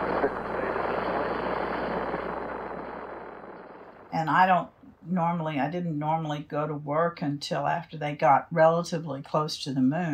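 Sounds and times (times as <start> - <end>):
Saturn V rocket liftoff roar: 0.0 - 4.5
speech: 4.1 - 10.1.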